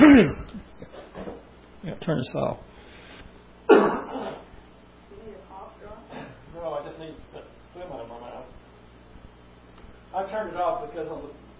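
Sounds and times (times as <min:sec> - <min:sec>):
man coughing during a Bible reading: 0:00.0 - 0:00.7, 0:03.7 - 0:04.6, 0:06.1 - 0:06.4
speech: 0:00.0 - 0:00.7, 0:02.0 - 0:02.7, 0:10.2 - 0:11.4.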